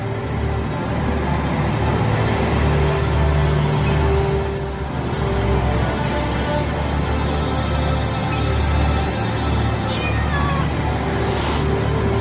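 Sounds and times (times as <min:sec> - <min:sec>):
loud continuous noise: 0:00.0 - 0:12.1
cat meowing near a bed: 0:09.9 - 0:11.6.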